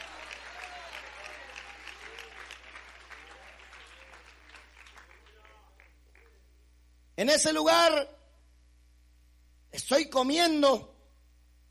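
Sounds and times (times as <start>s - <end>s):
audience applause: 0.0s - 6.4s
speech: 7.2s - 8.2s, 9.9s - 10.9s.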